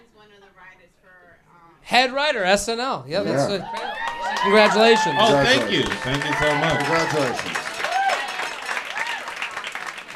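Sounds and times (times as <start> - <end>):
speech: 0.5 - 7.6
audience applause: 3.4 - 10.1.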